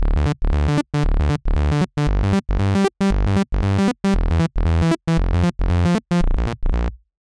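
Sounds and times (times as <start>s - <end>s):
bass: 0.0s - 7.0s.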